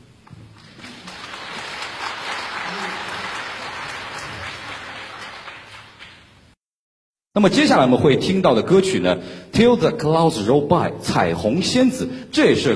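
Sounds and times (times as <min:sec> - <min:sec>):
audience applause welcoming singers onto the stage at a concert: 0:00.6 - 0:06.3
speech: 0:07.4 - 0:12.7.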